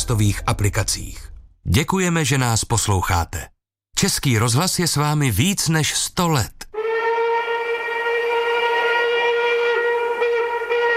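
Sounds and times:
speech: 0.1 - 6.6
steam train whistle of a passing express train: 6.8 - 10.9.

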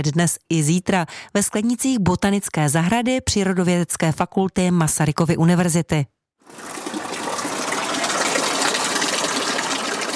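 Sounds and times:
speech: 0.0 - 6.8
fountain water splashing in a greenhouse: 6.5 - 10.1.

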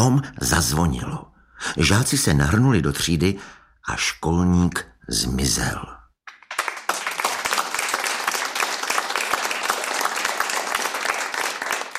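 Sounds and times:
speech: 0.0 - 6.0
room full of people applauding: 6.3 - 11.9.

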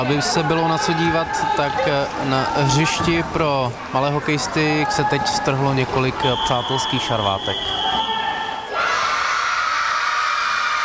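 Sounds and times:
speech: 0.0 - 7.8
crowd of children cheering and shouting: 8.7 - 10.8.

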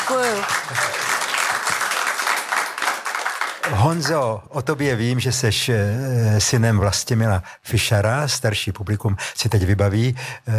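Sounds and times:
studio audience applauding during a talk show: 0.0 - 4.3
speech: 0.1 - 1.1, 3.8 - 10.5.

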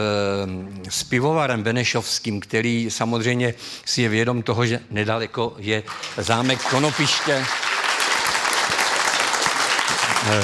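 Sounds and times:
speech: 0.0 - 7.8, 10.2 - 10.4
studio audience applauding: 5.9 - 10.4.

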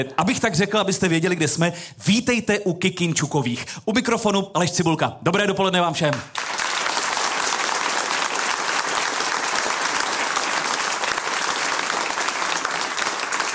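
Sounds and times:
speech: 0.0 - 6.6
packed theatre audience applauding: 6.1 - 13.5.

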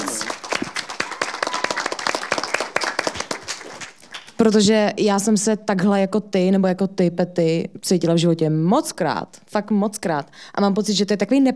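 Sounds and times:
audience clapping: 0.0 - 4.6
speech: 4.4 - 11.5.

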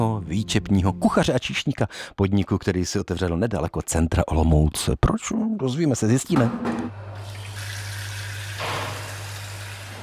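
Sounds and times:
speech: 0.3 - 7.3
running water filling beer-glass chiller: 7.2 - 10.0.

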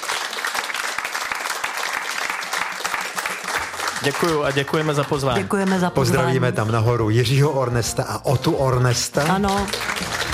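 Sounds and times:
audience applause: 0.0 - 6.4, 8.7 - 10.3
speech: 4.0 - 10.2.

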